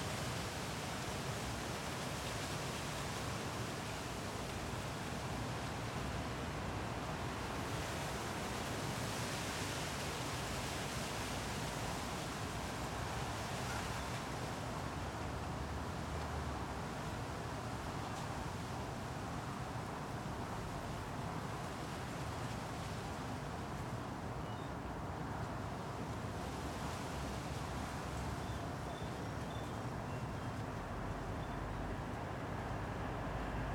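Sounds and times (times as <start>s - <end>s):
wind at night in Arcueil France: 0.0s - 33.7s
distant car traffic at night in Arcueil France: 30.7s - 33.7s.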